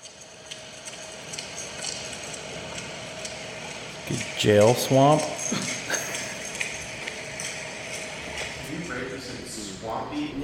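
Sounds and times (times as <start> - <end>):
air conditioner hum: 0.0 - 10.4
speech: 4.1 - 5.8.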